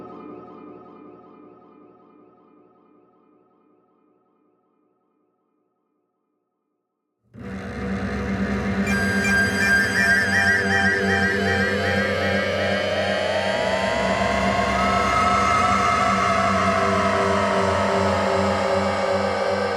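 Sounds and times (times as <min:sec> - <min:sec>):
siren: 0:07.4 - 0:19.6.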